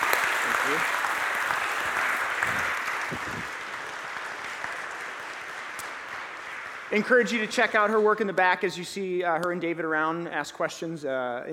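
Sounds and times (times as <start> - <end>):
audience applause: 0.0 - 8.2
speech: 0.7 - 1.0, 6.9 - 11.5.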